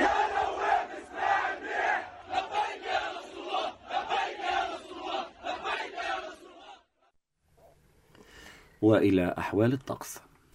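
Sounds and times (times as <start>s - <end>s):
crowd chanting slogans for President Salam: 0.0s - 7.1s
speech: 8.8s - 10.3s.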